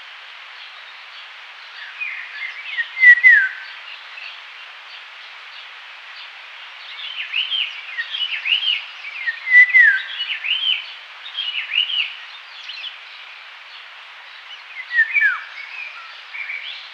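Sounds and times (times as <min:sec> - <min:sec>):
Indian golden oriole fluty whistled song: 0:01.8 - 0:03.6, 0:07.0 - 0:12.9, 0:14.5 - 0:16.9.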